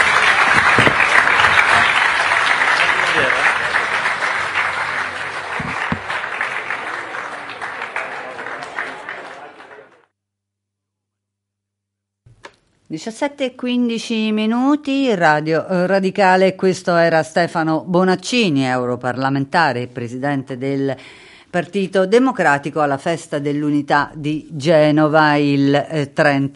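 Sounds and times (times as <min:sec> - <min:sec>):
audience applause: 0:00.0 - 0:10.1
speech: 0:13.0 - 0:26.5.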